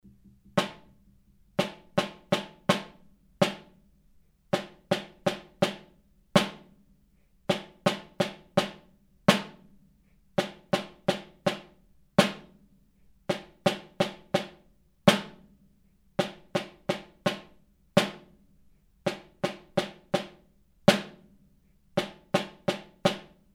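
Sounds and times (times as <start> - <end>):
snare drum: 0.0 - 3.8, 4.6 - 6.8, 7.5 - 9.8, 10.4 - 12.6, 13.3 - 15.5, 16.2 - 18.4, 19.1 - 21.4, 22.0 - 23.5.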